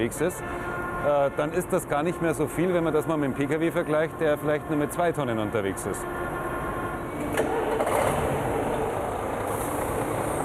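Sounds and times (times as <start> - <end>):
speech: 0.0 - 6.4
truck engine starting and running: 3.0 - 10.4.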